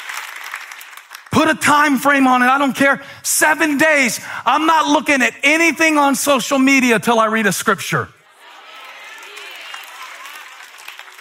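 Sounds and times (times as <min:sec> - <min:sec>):
audience applause: 0:00.0 - 0:01.3, 0:08.4 - 0:11.1
speech: 0:01.4 - 0:08.2.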